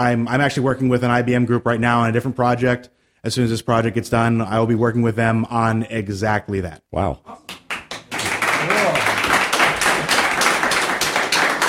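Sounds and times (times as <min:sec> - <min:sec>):
speech: 0:00.0 - 0:07.6
crowd applause: 0:07.5 - 0:11.6.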